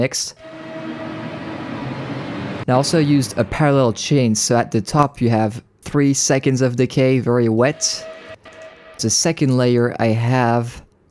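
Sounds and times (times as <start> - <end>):
speech: 0.0 - 0.6, 2.7 - 8.1, 9.0 - 10.8
metro train recording pitched down: 0.4 - 4.1, 7.6 - 9.6.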